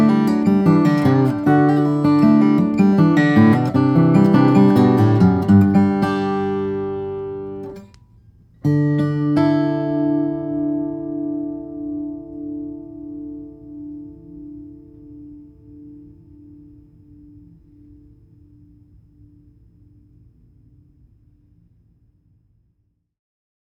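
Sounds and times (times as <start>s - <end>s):
Bourgeois OMC flattop steel string guitar with Brazilian rosewood and Adirondack spruce: 0.0s - 8.0s, 8.6s - 17.4s.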